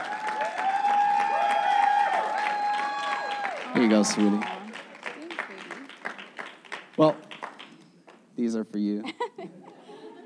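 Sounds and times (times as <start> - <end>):
audience applause: 0.0 - 7.8
speech: 3.8 - 4.6, 7.0 - 7.2, 8.4 - 9.7
laughter: 9.0 - 10.2.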